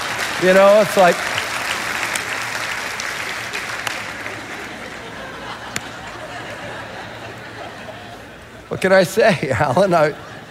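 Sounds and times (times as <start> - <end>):
partial scattered audience clapping: 0.0 - 6.6
speech: 0.4 - 1.4, 8.7 - 10.3
laughter: 3.4 - 10.4.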